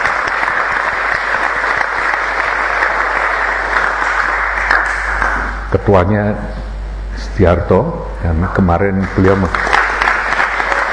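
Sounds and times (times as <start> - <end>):
audience applause: 0.0 - 5.6, 9.0 - 10.9
speech: 5.8 - 6.6, 7.2 - 9.7.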